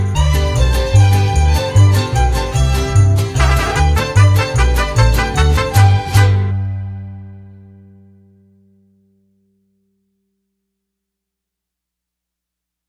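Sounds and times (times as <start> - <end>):
mariachi music: 0.0 - 8.7.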